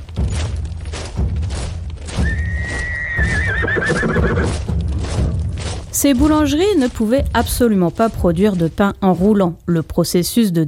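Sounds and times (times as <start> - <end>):
low thuds and movement: 0.0 - 3.4, 4.4 - 9.7
hooves walking: 0.0 - 10.4
horse whinnying: 2.2 - 4.6
speech: 6.0 - 10.6.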